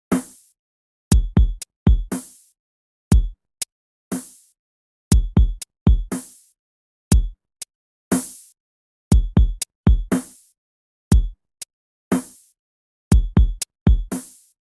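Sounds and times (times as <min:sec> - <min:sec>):
drum: 0:00.1 - 0:00.4, 0:01.1 - 0:02.4, 0:04.1 - 0:04.4, 0:05.1 - 0:06.4, 0:08.1 - 0:08.5, 0:09.1 - 0:10.4, 0:11.1 - 0:11.4, 0:12.1 - 0:12.4, 0:13.1 - 0:14.5.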